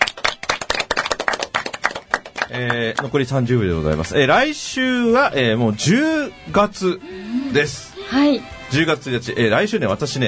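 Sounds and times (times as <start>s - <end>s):
crowd applause, people clapping: 0.0s - 4.5s
speech: 2.5s - 10.2s.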